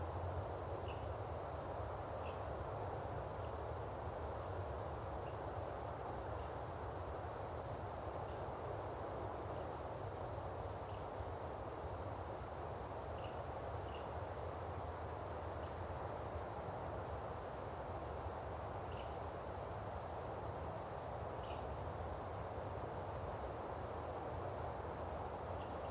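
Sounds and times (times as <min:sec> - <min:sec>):
light steady wind in a pine forest: 0:00.0 - 0:25.8.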